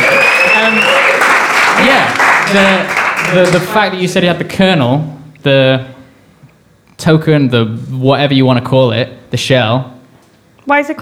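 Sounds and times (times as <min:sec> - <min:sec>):
audience applause: 0:00.0 - 0:03.9
speech: 0:01.9 - 0:05.9, 0:07.0 - 0:09.9, 0:10.7 - 0:11.0.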